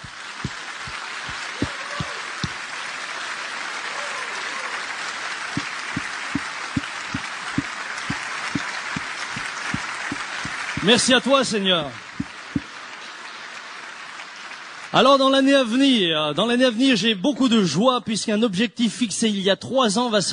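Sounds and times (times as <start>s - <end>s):
church congregation applause: 0.0s - 15.8s
regular beat of low thumps: 5.6s - 11.0s
speech: 10.8s - 12.0s, 14.9s - 20.3s.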